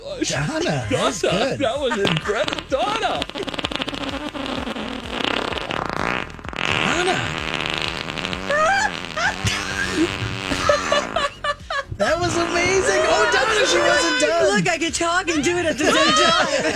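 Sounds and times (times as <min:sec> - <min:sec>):
speech: 0:00.2 - 0:03.5, 0:14.5 - 0:16.7
laughter: 0:00.2 - 0:03.6, 0:08.3 - 0:16.7
person imitating a fart with the mouth: 0:01.9 - 0:13.9.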